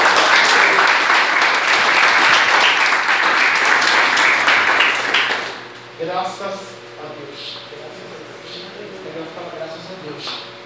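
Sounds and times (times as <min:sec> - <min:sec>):
audience applauding: 0:00.0 - 0:05.7.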